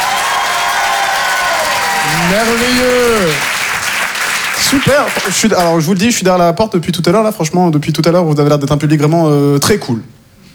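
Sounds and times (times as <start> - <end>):
crowd applauding: 0.0 - 6.2
speech: 2.2 - 3.5, 4.6 - 10.2.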